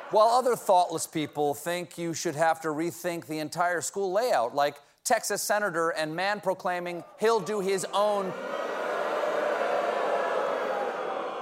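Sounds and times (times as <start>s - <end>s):
speech: 0.1s - 8.6s
audience booing: 7.0s - 11.4s.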